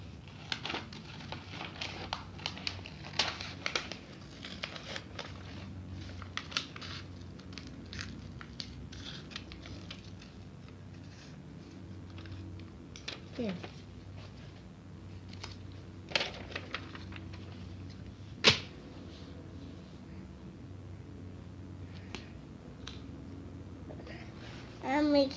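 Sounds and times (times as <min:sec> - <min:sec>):
low steady hum: 0:00.0 - 0:25.3
paper crinkling: 0:00.2 - 0:14.6, 0:15.2 - 0:18.7
speech: 0:13.4 - 0:13.7, 0:25.1 - 0:25.3.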